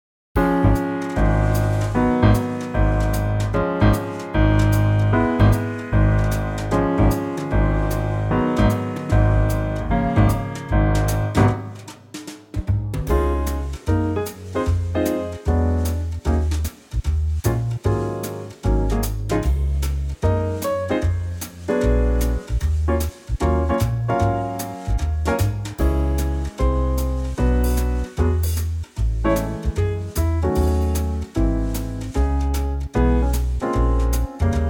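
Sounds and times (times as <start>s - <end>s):
quartet playing swing in D flat: 0.4s - 34.6s.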